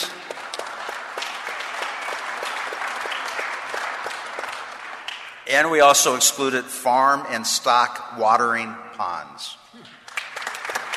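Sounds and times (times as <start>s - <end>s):
audience applause: 0.0s - 5.4s, 10.0s - 10.9s
speech: 5.5s - 9.9s.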